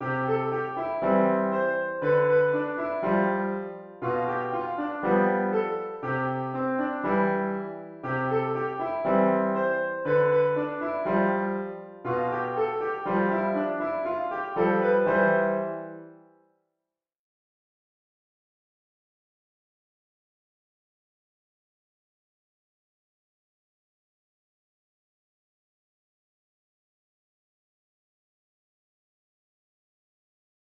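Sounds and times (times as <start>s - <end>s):
piano: 0.0s - 16.5s.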